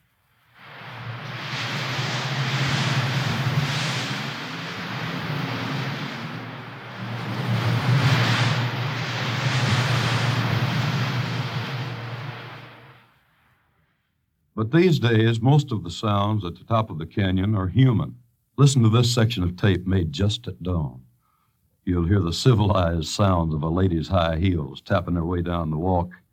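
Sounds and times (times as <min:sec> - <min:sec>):
wind whipping scrubby pine trees on the canyon edge: 0:00.0 - 0:13.1
speech: 0:14.6 - 0:21.0, 0:21.8 - 0:26.2.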